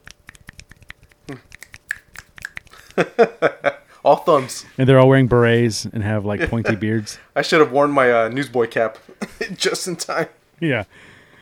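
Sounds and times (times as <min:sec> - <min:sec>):
finger snapping as applause: 0:00.0 - 0:03.0
speech: 0:01.3 - 0:01.5, 0:03.0 - 0:11.1
laughter: 0:02.7 - 0:03.9.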